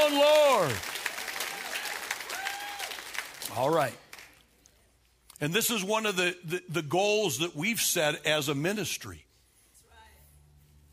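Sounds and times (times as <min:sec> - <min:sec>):
speech: 0:00.0 - 0:01.0, 0:03.5 - 0:04.0, 0:05.4 - 0:09.3
faint rising voices and cheers: 0:00.0 - 0:03.2
room full of people clapping: 0:00.0 - 0:04.6.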